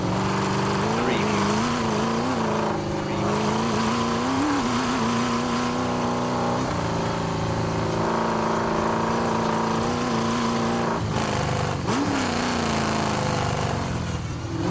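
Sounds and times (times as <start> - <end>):
Chevy V8 hot rod engine driving around: 0.0 - 14.7.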